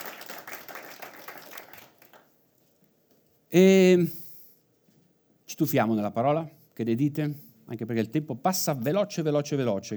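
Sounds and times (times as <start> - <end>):
audience applause: 0.0 - 2.3
speech: 3.5 - 4.2, 5.6 - 9.9.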